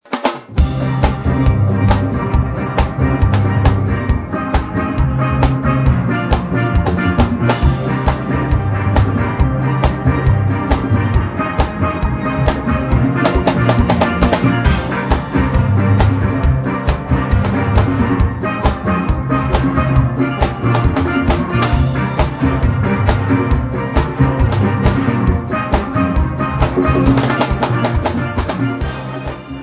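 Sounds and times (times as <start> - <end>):
jazz fusion on steel: 0.5 - 29.6.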